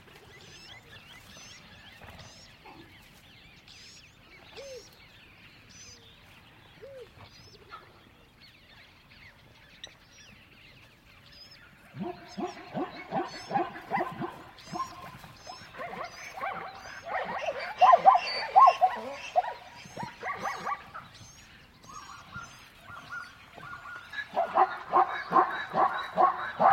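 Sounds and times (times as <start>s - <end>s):
savannah dog yapping in a savannah: 13.1s - 15.0s, 15.6s - 21.1s, 22.9s - 26.7s.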